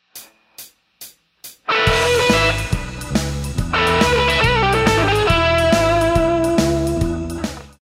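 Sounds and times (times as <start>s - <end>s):
guitar lick: 1.6s - 7.8s.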